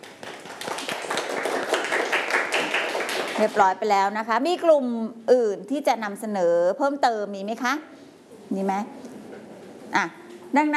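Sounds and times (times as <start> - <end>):
group of students clapping: 0.0 - 3.8
speech: 3.4 - 9.0, 9.9 - 10.7.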